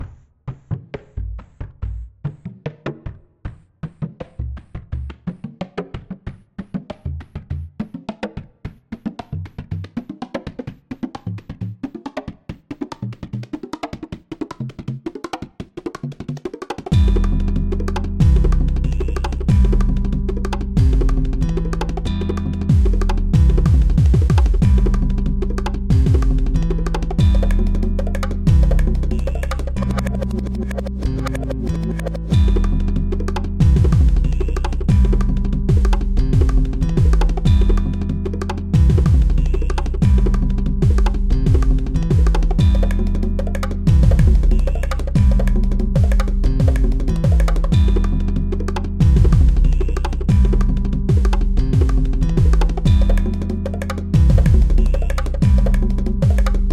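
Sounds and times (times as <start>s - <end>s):
left-field Indo garage paleo-Afrobeat techno music: 17.0s - 56.7s.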